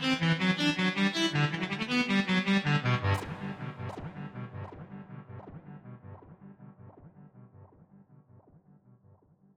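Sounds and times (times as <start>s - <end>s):
synth playing baroque gigue: 0.0s - 5.2s.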